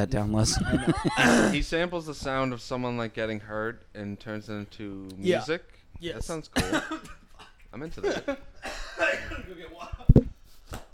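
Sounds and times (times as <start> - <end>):
speech: 0.0 - 10.1
person coughing: 1.1 - 1.6, 6.6 - 7.6.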